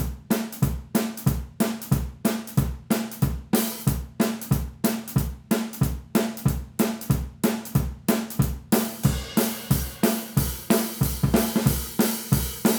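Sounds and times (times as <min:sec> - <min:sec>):
drums through a room microphone: 0:00.0 - 0:12.7.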